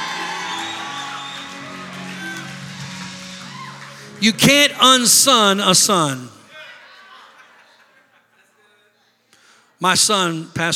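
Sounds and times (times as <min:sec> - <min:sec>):
scattered higher whoops: 0:00.0 - 0:04.2
audience cheering and shouting: 0:00.0 - 0:07.5
speech: 0:04.2 - 0:06.4, 0:09.8 - 0:10.7
laughter: 0:06.5 - 0:09.2.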